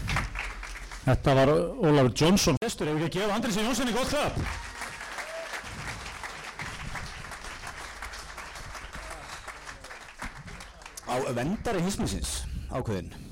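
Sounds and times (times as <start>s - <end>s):
audience applause: 0.0s - 1.2s, 4.1s - 12.1s
speech: 1.0s - 4.6s, 11.2s - 13.2s.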